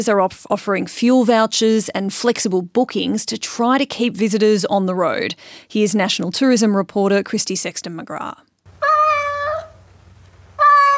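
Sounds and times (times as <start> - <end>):
speech: 0.0 - 8.5
cats meowing at a Sydney cattery: 8.8 - 9.8, 10.6 - 10.9.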